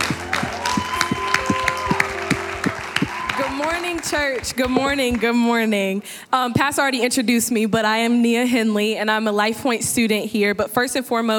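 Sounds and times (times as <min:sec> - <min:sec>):
audience applause: 0:00.0 - 0:05.4
speech: 0:04.0 - 0:11.3.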